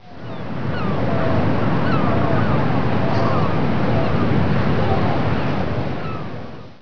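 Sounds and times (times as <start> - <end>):
seagulls calling: 0.1 - 6.4.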